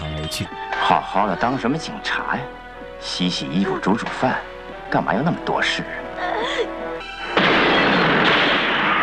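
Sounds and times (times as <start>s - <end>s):
speech: 0.3s - 6.5s
gas explosion in a home: 7.4s - 9.0s.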